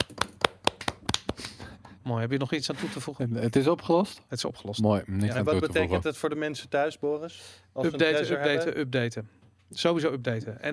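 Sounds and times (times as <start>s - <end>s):
sharp claps: 0.0s - 2.0s
speech: 2.1s - 10.7s.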